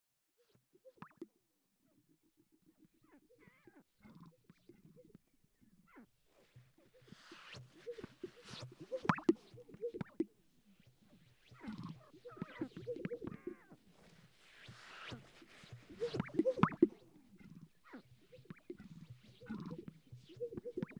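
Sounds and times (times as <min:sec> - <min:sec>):
sage-grouse display popping and bubbling: 0:07.4 - 0:10.3, 0:11.5 - 0:13.7, 0:15.0 - 0:17.7, 0:18.4 - 0:20.9.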